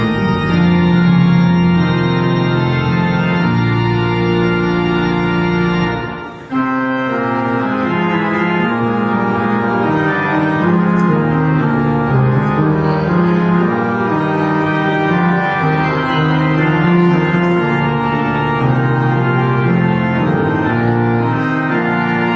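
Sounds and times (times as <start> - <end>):
organ prelude: 0.0 - 22.3.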